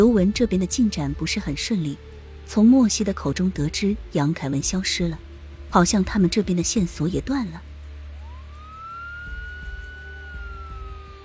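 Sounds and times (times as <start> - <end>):
speech: 0.0 - 7.7
low rumble: 0.0 - 11.2
distant police siren: 7.5 - 11.2.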